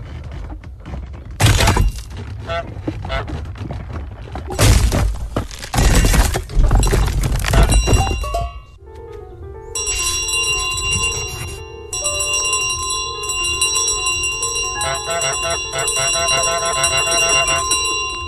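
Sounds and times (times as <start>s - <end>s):
crashing and splintering impacts of a model church being smashed in a video game: 1.2s - 8.7s
bell clanging: 6.8s - 8.8s, 9.8s - 18.2s.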